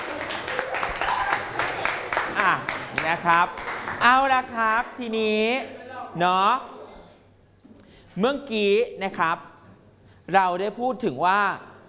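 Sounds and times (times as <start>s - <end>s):
students in a Thai classroom clapping for a classmate: 0.0s - 4.2s
speech: 2.4s - 6.7s, 8.2s - 9.5s, 10.3s - 11.7s.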